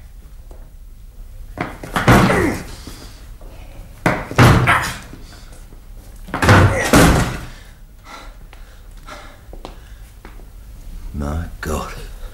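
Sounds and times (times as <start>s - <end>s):
shoulder slamming against a locked door to force it open: 1.6s - 2.8s, 4.0s - 5.2s, 6.3s - 7.6s.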